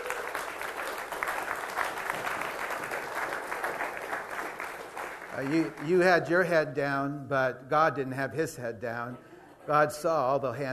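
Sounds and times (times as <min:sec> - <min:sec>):
audience applauding: 0:00.0 - 0:06.3
speech: 0:05.4 - 0:10.7.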